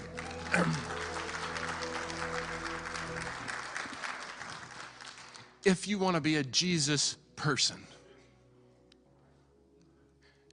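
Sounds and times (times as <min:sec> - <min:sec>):
audience clapping: 0:00.0 - 0:06.0
speech: 0:05.7 - 0:07.9.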